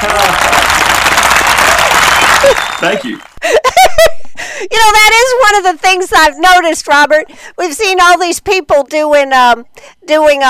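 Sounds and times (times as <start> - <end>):
crowd applause sound effect: 0.0 - 3.4
speech: 2.8 - 3.7, 4.6 - 10.4.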